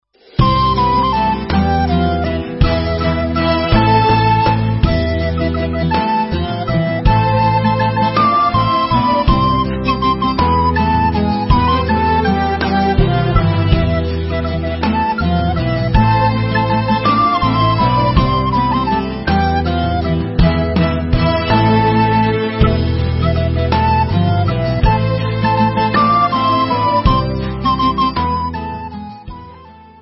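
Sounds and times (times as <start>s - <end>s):
instrumental Israeli dance music: 0.2s - 29.9s.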